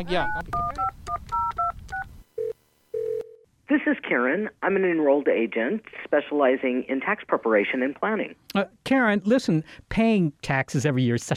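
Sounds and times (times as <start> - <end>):
speech: 0.0 - 1.0, 4.1 - 11.3
cell phone dialing tones: 0.2 - 3.4.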